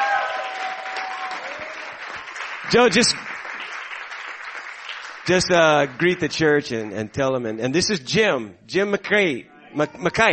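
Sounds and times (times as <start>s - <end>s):
church congregation clapping to welcome a guest: 0.0s - 6.5s
speech: 2.7s - 3.3s, 5.3s - 10.3s.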